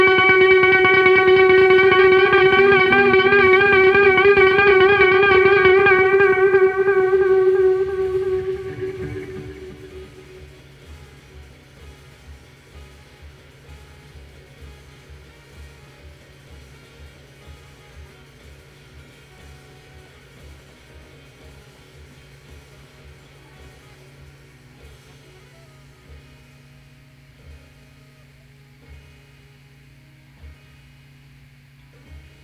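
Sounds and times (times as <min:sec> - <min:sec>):
guitar with delay effect: 0:00.0 - 0:10.9.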